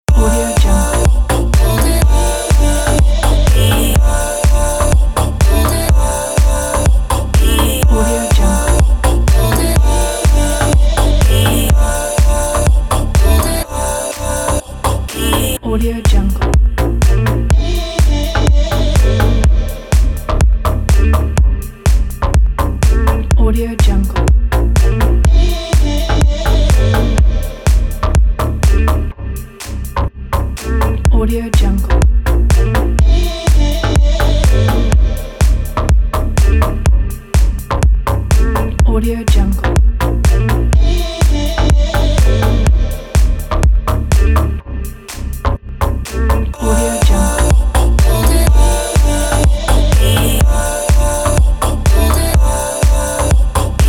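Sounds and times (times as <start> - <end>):
deep house dance loop: 0.0 - 53.8.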